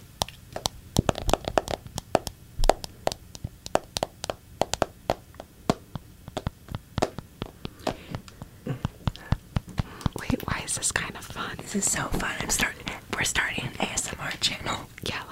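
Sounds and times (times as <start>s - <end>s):
tapping on a phone screen: 0.2s - 10.2s
speech: 11.7s - 15.2s.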